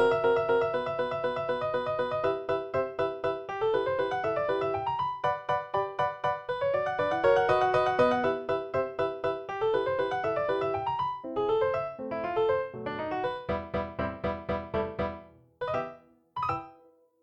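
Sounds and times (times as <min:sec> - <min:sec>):
mini grand piano playing: 0:00.0 - 0:17.1.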